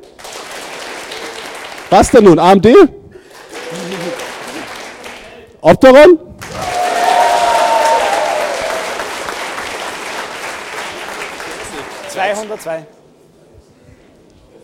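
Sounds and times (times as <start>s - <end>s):
audience applause: 0.0s - 2.2s, 3.2s - 5.4s, 6.4s - 12.8s
speech: 1.9s - 3.0s, 5.6s - 6.3s, 12.3s - 13.0s.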